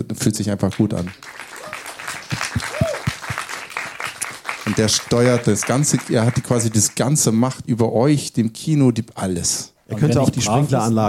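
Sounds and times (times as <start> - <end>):
speech: 0.1 - 1.4, 4.8 - 11.0
audience applause: 0.7 - 7.3.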